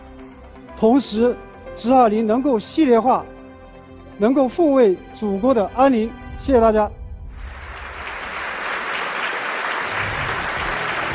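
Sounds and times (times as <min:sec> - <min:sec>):
speech: 0:00.8 - 0:03.4, 0:04.2 - 0:07.0
audience applause: 0:07.4 - 0:11.1.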